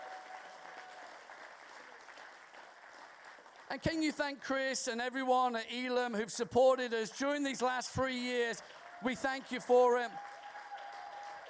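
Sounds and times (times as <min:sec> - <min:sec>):
audience applause: 0:00.0 - 0:04.0, 0:08.5 - 0:11.4
speech: 0:03.7 - 0:10.3.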